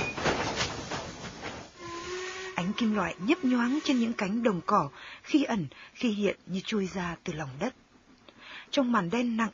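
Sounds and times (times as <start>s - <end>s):
train rumbling: 0.0s - 5.0s
train steam: 1.4s - 5.0s
screeching metal of train: 1.8s - 4.9s
speech: 2.8s - 7.8s, 8.7s - 9.5s.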